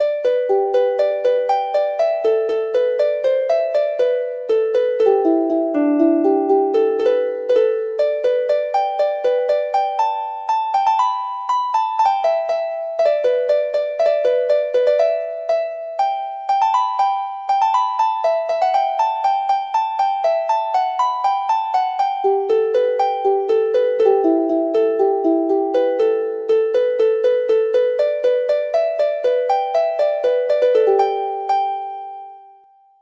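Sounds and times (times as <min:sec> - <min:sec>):
harp: 0:00.0 - 0:33.0.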